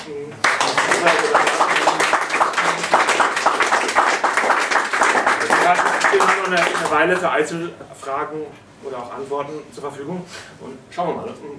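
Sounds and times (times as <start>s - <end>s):
audience clapping: 0.4s - 7.3s
speech: 6.5s - 11.5s.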